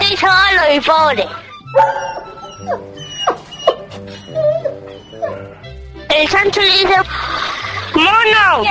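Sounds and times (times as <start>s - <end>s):
speech: 0.1s - 3.0s, 5.2s - 8.7s
dog barking and whimpering: 1.7s - 5.6s.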